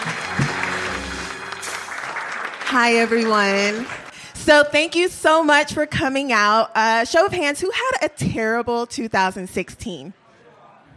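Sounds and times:
audience applause: 0:00.0 - 0:04.3
speech: 0:02.7 - 0:10.2.

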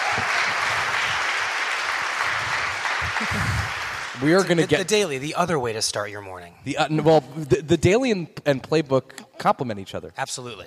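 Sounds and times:
audience applause: 0:00.0 - 0:05.2
speech: 0:03.2 - 0:10.6.

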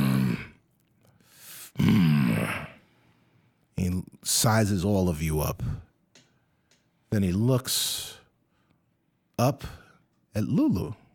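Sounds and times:
man's voice imitating a creature's growl: 0:00.0 - 0:00.6, 0:01.8 - 0:02.8
speech: 0:03.8 - 0:05.9, 0:07.1 - 0:08.2, 0:09.4 - 0:09.8, 0:10.4 - 0:11.0.

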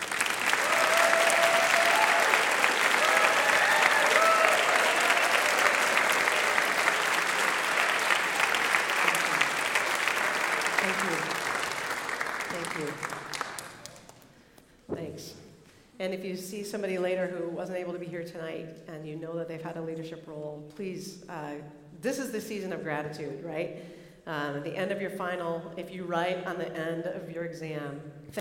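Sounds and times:
audience applause: 0:00.0 - 0:14.3
speech: 0:16.1 - 0:28.3.

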